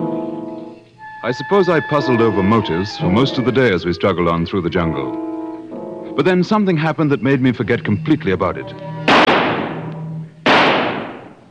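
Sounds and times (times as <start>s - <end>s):
speech: 1.2s - 5.3s, 6.2s - 9.0s
hunter's gunshots shooting an antelope in the jungle: 9.1s - 11.4s.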